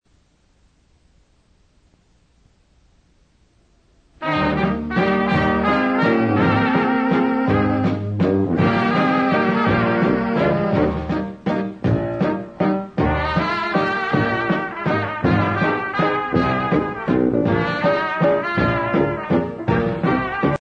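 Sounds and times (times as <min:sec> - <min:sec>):
waltz music: 0:04.2 - 0:20.5.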